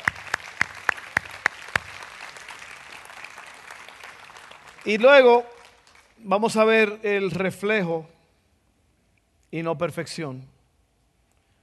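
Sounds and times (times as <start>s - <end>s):
audience applause: 0.0s - 6.1s
speech: 4.8s - 5.5s, 6.2s - 8.2s, 9.5s - 10.5s.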